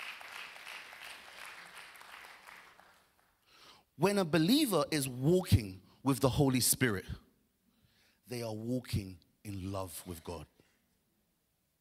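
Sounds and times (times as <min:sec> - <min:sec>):
crowd clapping: 0:00.0 - 0:03.4
speech: 0:04.0 - 0:07.2, 0:08.3 - 0:10.5.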